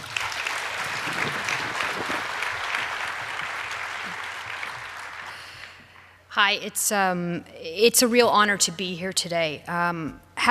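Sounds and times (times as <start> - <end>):
audience applause: 0.0 - 5.9
speech: 6.4 - 10.2.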